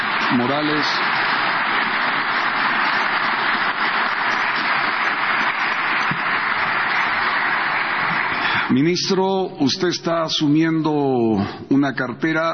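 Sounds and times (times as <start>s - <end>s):
crowd clapping: 0.0s - 9.8s
speech: 0.3s - 1.1s, 8.7s - 12.5s.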